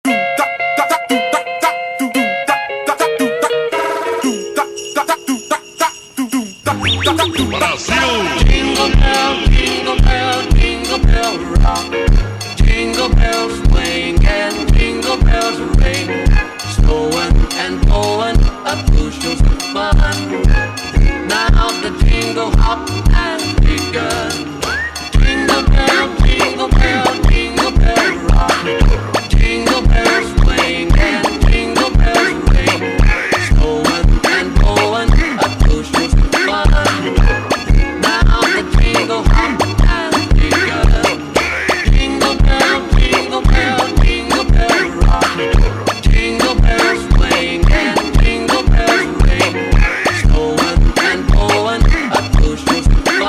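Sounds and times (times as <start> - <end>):
slowed funk Christmas song: 0.0 - 53.2.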